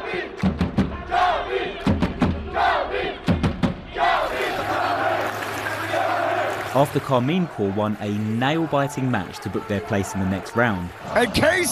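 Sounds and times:
esports fans at an Esports World Cup match roaring and shouting: 0.0s - 11.6s
speech: 6.8s - 11.6s.

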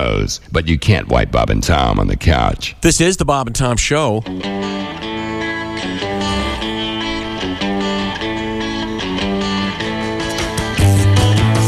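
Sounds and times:
speech: 0.1s - 4.9s
Rickenbacker 12-string electric guitar strumming: 4.1s - 11.6s
full band with bass and drums: 4.4s - 11.6s.

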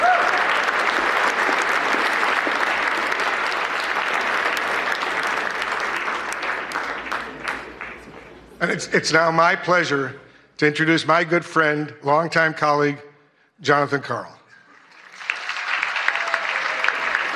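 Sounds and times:
round of applause: 0.0s - 8.6s, 14.6s - 17.3s
speech: 8.6s - 14.4s.

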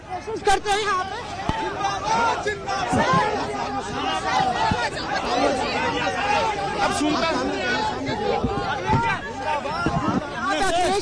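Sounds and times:
crowd chatter: 0.0s - 11.0s
speech: 0.2s - 8.9s.

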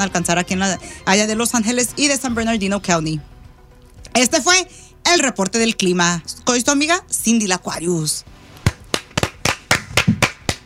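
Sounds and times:
speech: 0.0s - 3.3s, 4.2s - 8.3s
hand clapping applause in studio: 8.7s - 10.6s.

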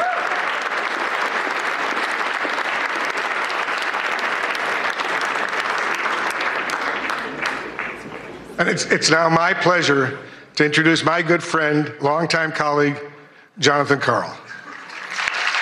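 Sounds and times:
audience applause: 0.0s - 8.6s, 14.6s - 15.6s
speech: 8.6s - 14.4s.

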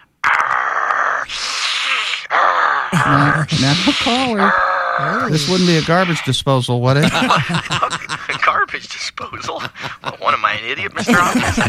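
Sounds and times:
person imitating a bear growling: 0.2s - 6.2s
speech: 3.1s - 8.1s, 8.7s - 11.6s
laughter: 6.9s - 11.6s.

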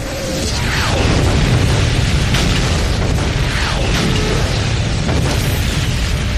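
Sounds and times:
artillery creeping barrage explosions: 0.0s - 6.3s.

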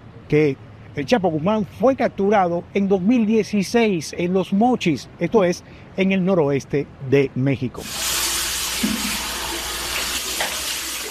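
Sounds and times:
speech: 0.3s - 8.1s
tap water running into a sink as a man washes his face: 7.9s - 11.0s.

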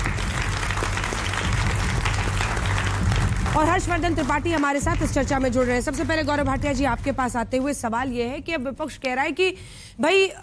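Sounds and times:
audience applause: 0.0s - 4.3s
speech: 3.6s - 10.4s.

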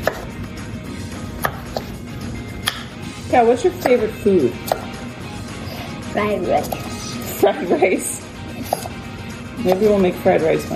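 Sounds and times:
knife chopping zucchini into strips: 0.0s - 0.3s, 1.3s - 2.0s, 3.8s - 5.0s, 6.4s - 7.3s, 8.6s - 9.0s, 9.6s - 10.7s
speech: 3.3s - 4.8s, 6.2s - 8.1s, 9.6s - 10.7s.

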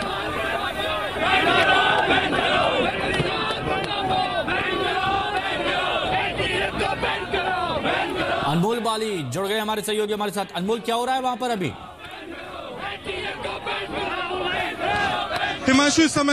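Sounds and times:
protesting crowd clapping: 0.0s - 9.0s, 12.0s - 16.3s
protesting crowd shouting: 0.0s - 16.3s
speech: 8.5s - 11.9s, 15.7s - 16.3s.

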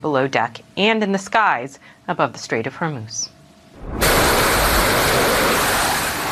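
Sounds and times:
speech: 0.0s - 4.0s
fighter jet taking off from carrier USS Abraham Lincoln: 3.8s - 6.3s.

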